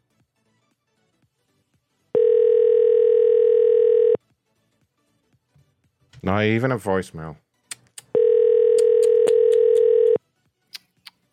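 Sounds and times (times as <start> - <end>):
landline telephone ringing tone on an unanswered call: 2.2 - 4.2, 8.2 - 10.2
speech: 6.3 - 7.4.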